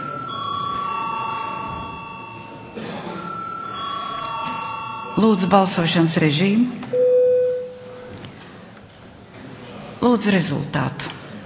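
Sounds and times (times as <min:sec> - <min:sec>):
parliament chamber electric bell ringing before a vote: 0:00.0 - 0:06.1
murmur: 0:00.0 - 0:06.9, 0:07.5 - 0:11.4
speech: 0:05.2 - 0:07.0, 0:10.2 - 0:11.2.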